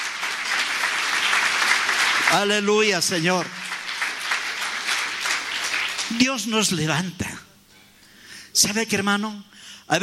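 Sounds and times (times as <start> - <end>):
church congregation clapping in praise: 0.0 - 7.1
speech: 2.3 - 3.6, 6.1 - 7.4, 8.6 - 10.0.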